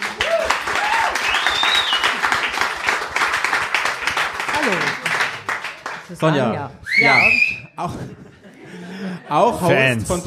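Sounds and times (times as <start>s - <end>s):
audience applause: 0.0s - 6.5s
whistles: 1.2s - 2.2s, 6.8s - 7.8s
speech: 6.1s - 8.3s, 9.3s - 10.2s
laughter: 7.8s - 9.7s.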